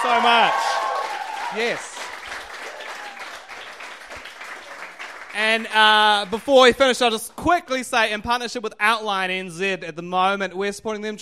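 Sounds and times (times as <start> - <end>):
audience clapping: 0.0 - 7.0
speech: 0.1 - 0.8, 1.5 - 2.0, 5.4 - 11.2.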